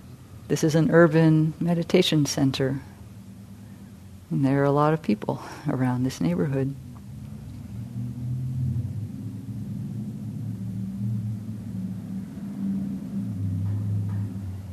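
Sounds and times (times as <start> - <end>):
speech: 0.5 - 2.9, 4.3 - 6.9
loud motorcycle passing by: 6.8 - 14.7.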